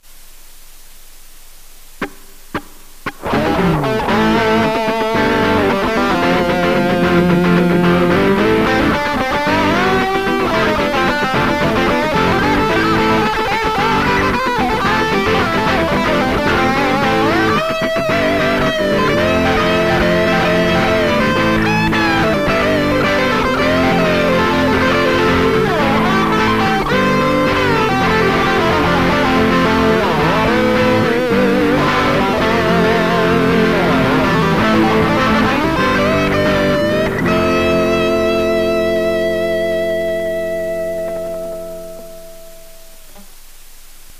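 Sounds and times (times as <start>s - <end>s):
Gibson guitar: 1.9s - 44.1s.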